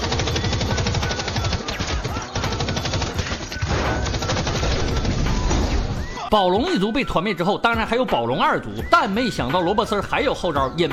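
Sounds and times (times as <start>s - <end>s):
Gatling machine gun fire: 0.0s - 5.7s
speech: 6.3s - 10.9s.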